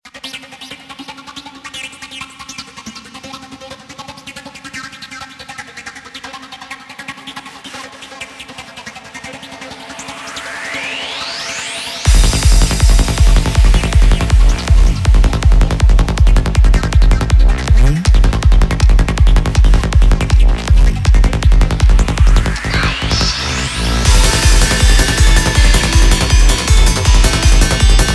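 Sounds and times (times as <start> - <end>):
boss battle game music: 12.1 - 28.1.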